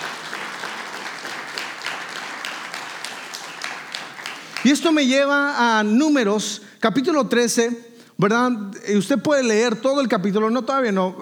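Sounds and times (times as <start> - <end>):
audience applauding: 0.0 - 5.2
speech: 4.6 - 11.2.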